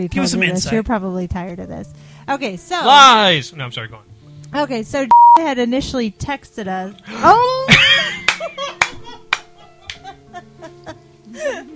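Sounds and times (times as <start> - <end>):
speech: 0.0 - 7.8
laughter: 7.6 - 11.7
clapping: 8.0 - 10.1.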